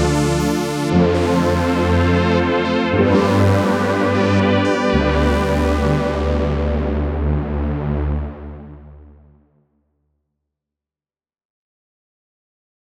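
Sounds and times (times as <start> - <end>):
zero delay feedback filter: 0.0 - 9.4.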